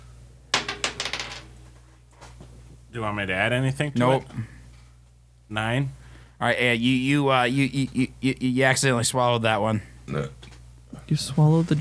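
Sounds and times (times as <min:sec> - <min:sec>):
twenty-sided die clattering across a hard table: 0:00.6 - 0:01.6
speech: 0:02.9 - 0:04.6, 0:05.5 - 0:10.4, 0:11.1 - 0:11.7.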